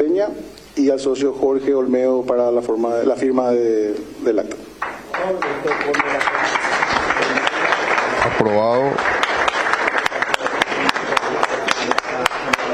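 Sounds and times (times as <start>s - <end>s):
speech: 0.2s - 4.6s, 5.2s - 6.7s, 8.4s - 9.1s
members applauding at an assembly: 4.8s - 12.7s.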